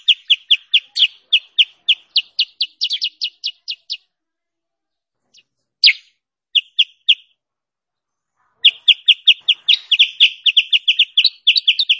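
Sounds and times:
sooty-headed bulbul chirping: 0.0 - 4.1, 5.3 - 7.3, 8.6 - 11.9.

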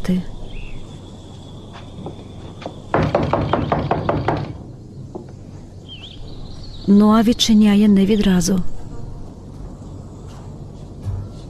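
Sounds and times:
speech: 0.1 - 0.4, 6.9 - 8.7
loud hollow knocks on a front door: 2.0 - 5.4.

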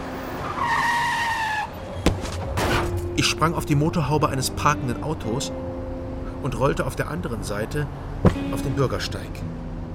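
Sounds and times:
tires skidding: 0.0 - 3.0
speech: 3.2 - 5.8, 6.4 - 9.6.

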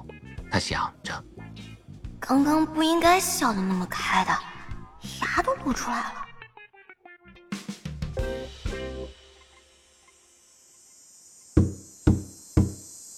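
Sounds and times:
speech: 0.5 - 4.5, 5.1 - 6.2
man knocking by hand on a door: 11.6 - 12.8.

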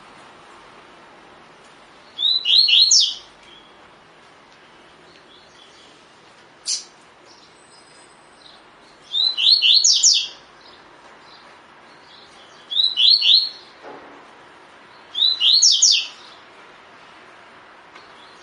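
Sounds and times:
double-collared seedeater whistled song: 2.2 - 3.2, 9.0 - 10.4, 12.7 - 13.6, 15.1 - 16.2.

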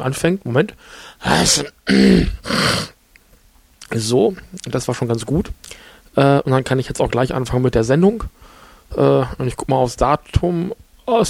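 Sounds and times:
speech: 0.0 - 3.0, 3.9 - 11.2
person ritually clearing throat before starting a show: 1.2 - 3.0.

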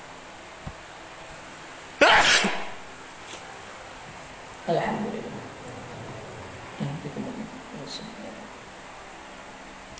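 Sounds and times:
person sneezing: 2.0 - 3.4
speech: 4.7 - 5.2.

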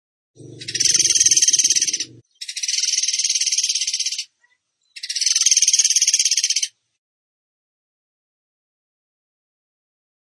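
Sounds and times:
buzzy bird song: 0.4 - 6.8.

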